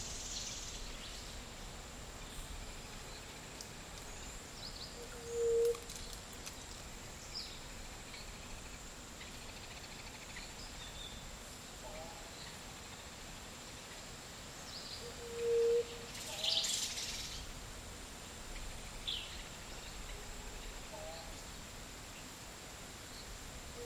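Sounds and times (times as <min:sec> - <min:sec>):
insects hissing in a Costa Rican dry forest at midday: 0:00.0 - 0:23.8.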